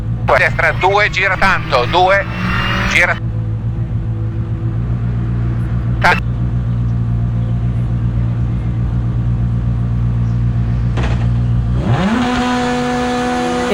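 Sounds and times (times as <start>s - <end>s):
Lancia rally car engine driving a test lap on the fourth stage: 0.0s - 13.7s
speech: 0.3s - 3.3s, 6.0s - 6.3s.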